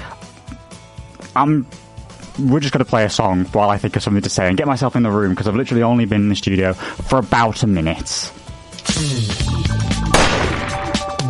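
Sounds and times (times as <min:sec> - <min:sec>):
speech: 0:01.3 - 0:01.8, 0:02.4 - 0:08.4, 0:09.0 - 0:09.5
gunshot sound effect: 0:10.1 - 0:11.2.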